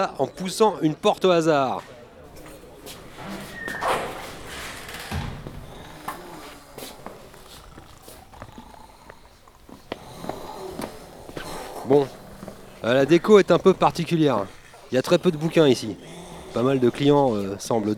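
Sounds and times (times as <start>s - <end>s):
speech: 0.0s - 2.0s, 11.9s - 12.2s, 12.8s - 17.9s
person sniffing: 5.4s - 17.6s.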